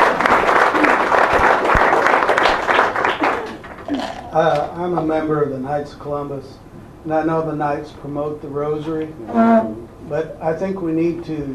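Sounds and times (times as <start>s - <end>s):
audience applause: 0.0s - 4.2s
speech: 4.4s - 11.5s.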